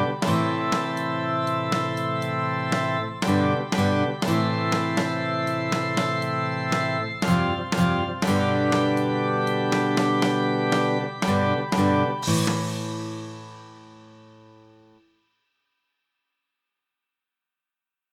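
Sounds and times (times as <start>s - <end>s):
pipe organ: 0.0s - 14.0s.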